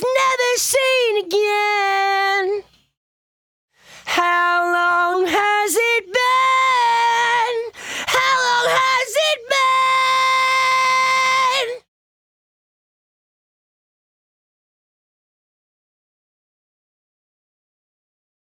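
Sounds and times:
lead vocal: 0.0 - 2.7, 3.9 - 11.8.

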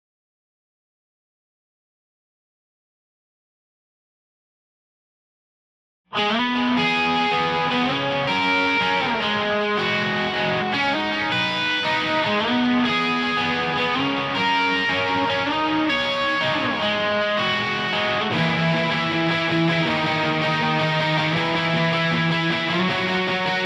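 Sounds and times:
bass guitar: 6.2 - 23.6.

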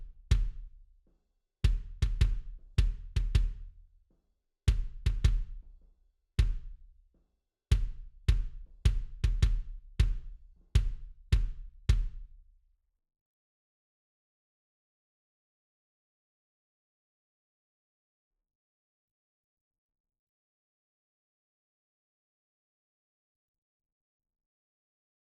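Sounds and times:
kick drum: 0.0 - 0.9, 1.6 - 3.9, 4.7 - 5.8, 6.4 - 7.1, 7.7 - 12.5.

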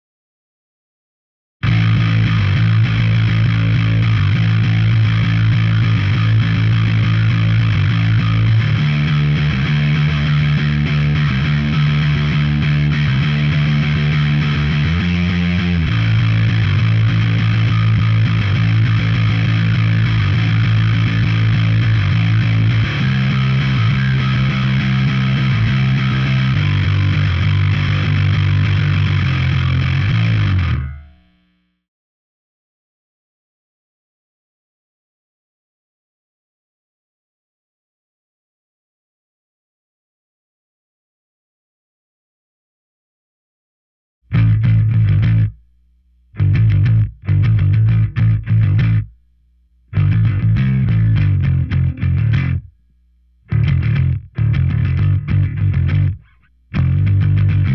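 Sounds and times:
bass: 1.6 - 31.7, 44.3 - 57.7.

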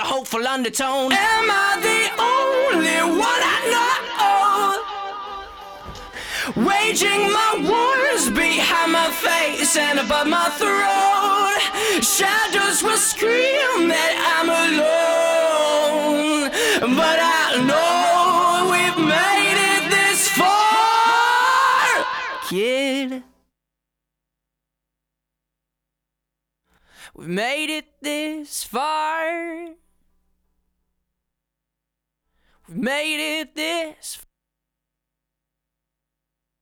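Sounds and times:
lead vocals: 0.0 - 23.4, 27.0 - 29.8, 32.7 - 34.2.

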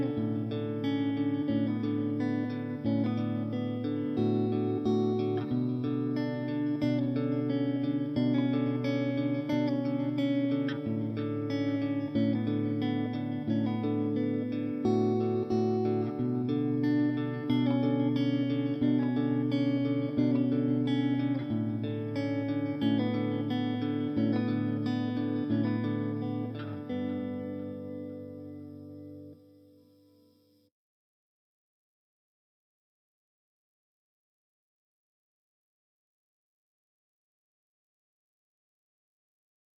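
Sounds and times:
guitar stems: 0.0 - 29.9.

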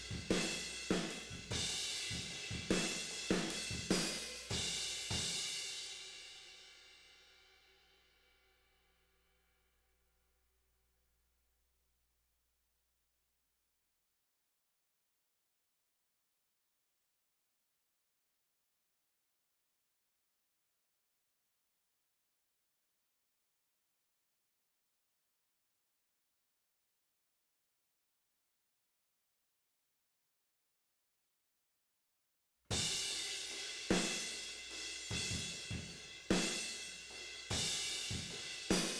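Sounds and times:
tom drums: 0.0 - 5.7, 32.7 - 38.9.

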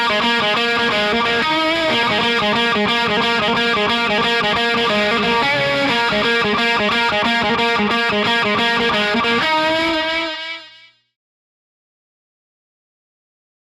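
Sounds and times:
bass guitar: 0.0 - 10.8.

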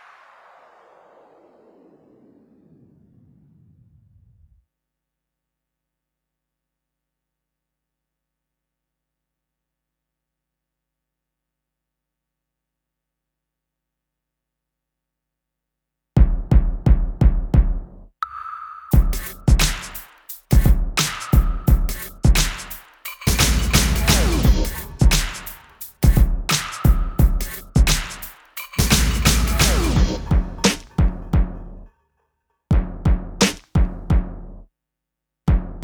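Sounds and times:
percussion: 16.2 - 34.4.

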